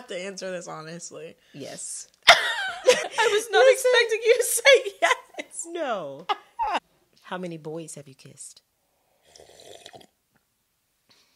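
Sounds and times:
speech: 0.1s - 8.7s
laughter: 2.3s - 6.8s
person slurping: 9.1s - 10.1s.

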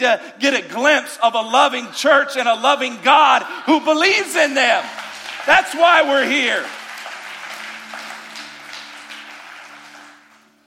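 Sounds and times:
speech: 0.0s - 6.8s
audience clapping: 3.8s - 10.6s.

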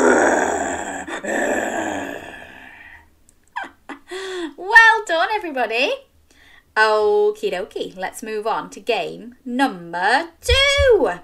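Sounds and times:
person imitating grizzly bear growl: 0.0s - 3.0s
short breathy sounds: 0.0s - 3.1s
speech: 5.4s - 6.1s, 6.8s - 11.2s.

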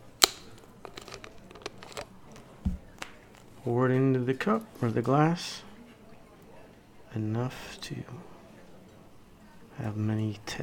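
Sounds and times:
plastic Coke bottle being opened: 0.2s - 3.5s
speech: 3.6s - 5.7s, 7.1s - 8.3s, 9.8s - 10.6s.

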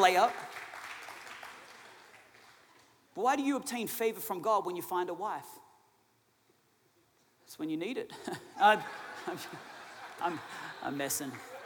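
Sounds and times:
speech: 0.0s - 0.5s, 3.2s - 5.6s, 7.5s - 11.5s
audience applause: 0.0s - 2.8s, 9.2s - 11.6s
laughter: 8.2s - 11.6s.

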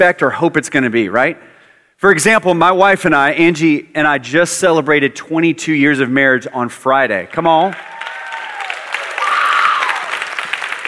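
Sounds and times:
speech: 0.0s - 8.0s
audience clapping: 7.4s - 10.8s.

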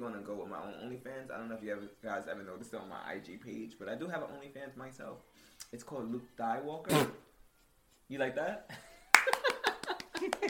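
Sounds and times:
speech: 0.0s - 7.3s, 8.1s - 8.9s
clapping: 9.1s - 10.4s.

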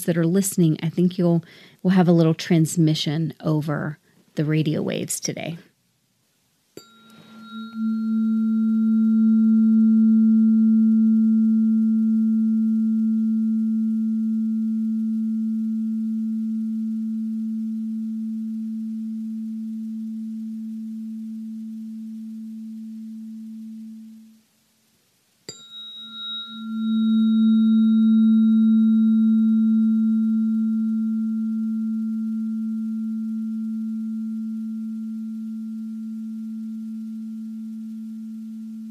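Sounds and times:
speech: 0.0s - 5.7s
tuning fork ringing: 6.8s - 24.5s, 25.5s - 38.8s.

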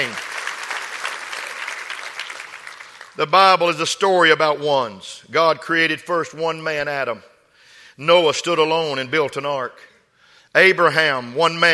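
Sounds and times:
audience clapping hands: 0.0s - 3.2s
speech: 3.2s - 7.3s, 8.0s - 9.9s, 10.5s - 11.7s.

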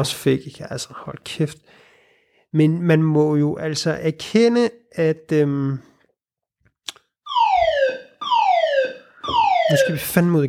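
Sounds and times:
speech: 0.0s - 1.8s, 2.5s - 5.9s, 9.7s - 10.4s
fire alarm: 7.3s - 10.2s.

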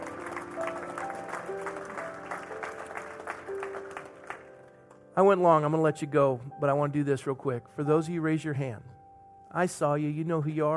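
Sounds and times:
audience applause: 0.0s - 4.8s
speech: 5.2s - 8.9s, 9.5s - 10.7s.

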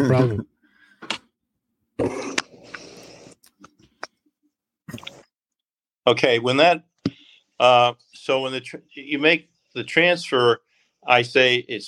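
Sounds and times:
speech: 0.0s - 0.5s, 2.0s - 2.4s, 6.1s - 6.9s, 7.6s - 11.8s
person sipping water: 2.0s - 4.2s, 4.9s - 5.4s.

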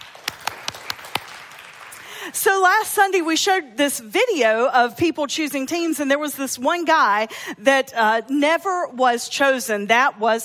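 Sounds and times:
audience applause: 0.0s - 2.3s
speech: 2.3s - 10.4s.

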